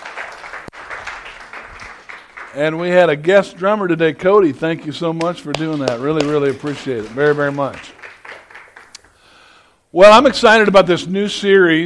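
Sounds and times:
audience applause: 0:00.0 - 0:02.8, 0:05.5 - 0:09.2
speech: 0:02.5 - 0:08.0, 0:09.9 - 0:11.8.

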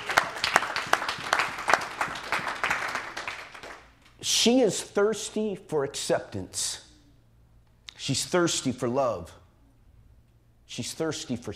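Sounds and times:
audience clapping: 0:00.0 - 0:04.0
speech: 0:04.2 - 0:06.8, 0:08.0 - 0:09.4, 0:10.7 - 0:11.5.

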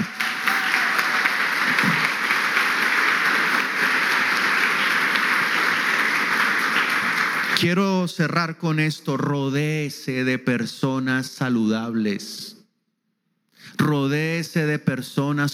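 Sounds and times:
audience applause: 0:00.0 - 0:07.7
speech: 0:07.6 - 0:12.6, 0:13.8 - 0:15.5.

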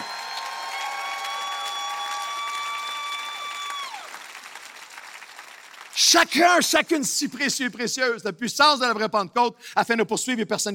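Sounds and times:
audience applause: 0:00.0 - 0:07.0
speech: 0:06.0 - 0:10.7.

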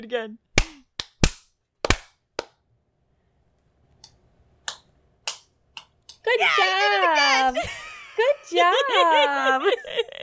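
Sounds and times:
speech: 0:00.0 - 0:00.5, 0:06.2 - 0:10.2
hand clapping: 0:00.6 - 0:02.6, 0:04.7 - 0:06.2
laughter: 0:06.4 - 0:10.2.

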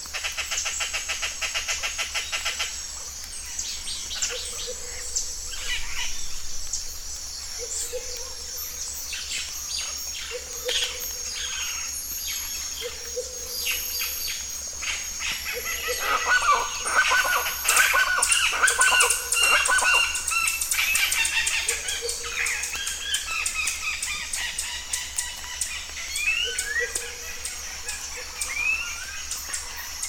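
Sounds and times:
high insect buzz: 0:00.0 - 0:30.0
birds singing in a bird reserve: 0:00.1 - 0:30.0.

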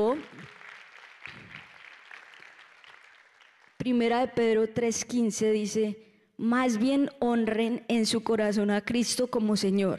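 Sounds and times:
audience applause: 0:00.0 - 0:03.8
speech: 0:03.8 - 0:09.9.

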